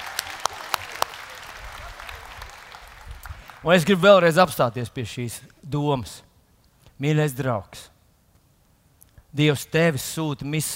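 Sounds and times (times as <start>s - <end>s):
audience applause: 0.0s - 3.9s
speech: 3.6s - 6.3s, 7.0s - 7.9s, 9.3s - 10.7s.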